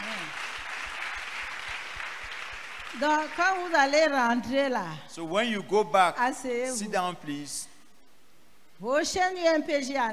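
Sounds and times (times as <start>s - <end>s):
steady applause from an audience: 0.0s - 4.0s
speech: 2.9s - 7.7s, 8.8s - 10.1s.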